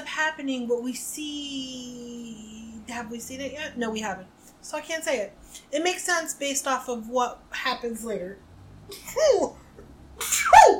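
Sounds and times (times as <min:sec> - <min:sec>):
speech: 0:00.2 - 0:09.6
person sneezing: 0:10.2 - 0:10.7.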